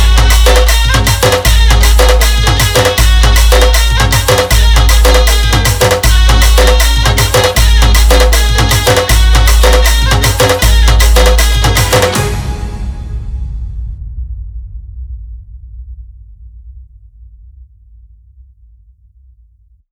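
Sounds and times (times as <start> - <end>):
Sambalpuri rhythm: 0.0 - 12.6.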